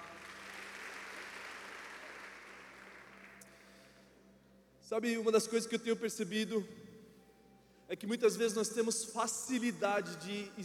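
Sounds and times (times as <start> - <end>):
loud audience applause: 0.0 - 3.4
speech: 4.9 - 6.9, 8.0 - 10.6.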